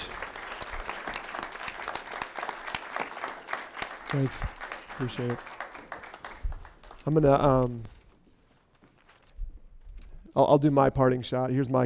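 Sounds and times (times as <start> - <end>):
audience applause: 0.0 - 7.4
speech: 4.1 - 5.5, 7.0 - 8.0, 10.4 - 11.8.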